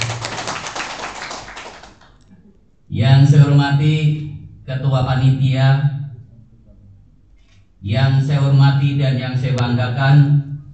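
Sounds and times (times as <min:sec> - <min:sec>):
audience applause at a regional union conference in Jakarta: 0:00.0 - 0:02.2
speech: 0:02.9 - 0:06.0, 0:07.8 - 0:10.4.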